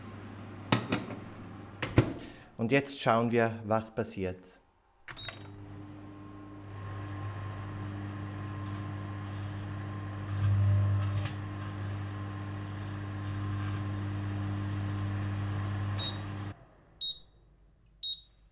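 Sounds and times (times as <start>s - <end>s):
microwave oven running with grapes inside: 0.0s - 2.4s, 5.1s - 16.6s
speech: 2.6s - 4.6s.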